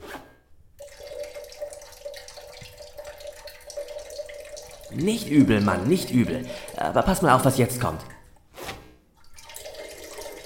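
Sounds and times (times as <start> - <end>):
man urinating: 0.8 - 8.4, 9.1 - 10.4
speech: 4.9 - 8.2.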